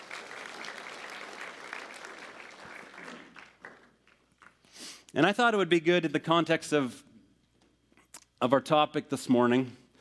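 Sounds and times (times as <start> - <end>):
audience applause welcoming guests to the stage: 0.0 - 4.5
speech: 5.1 - 7.0, 8.4 - 9.8.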